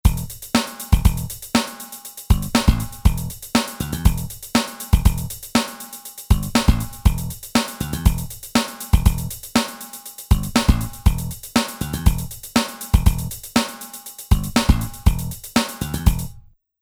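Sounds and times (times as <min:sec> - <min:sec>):
funk music: 0:00.1 - 0:01.4, 0:02.3 - 0:05.4, 0:06.3 - 0:09.4, 0:10.3 - 0:13.4, 0:14.3 - 0:16.3.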